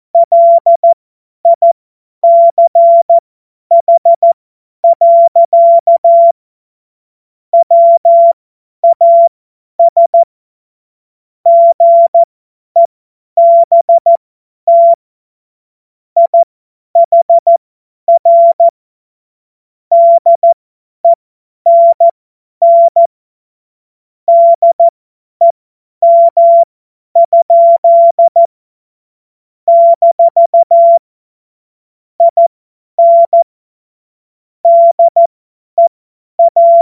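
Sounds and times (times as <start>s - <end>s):
CW Morse code beeps: 0.2s - 6.4s, 7.6s - 10.3s, 11.5s - 15.0s, 16.2s - 18.7s, 19.9s - 23.1s, 24.3s - 24.9s, 26.0s - 28.5s, 29.7s - 31.0s, 32.2s - 33.4s, 34.6s - 36.7s.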